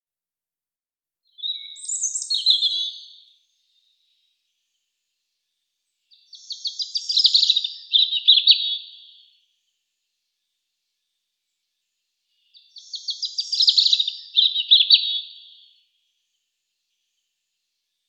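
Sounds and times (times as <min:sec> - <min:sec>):
European robin song: 0:01.3 - 0:09.4, 0:11.5 - 0:17.6.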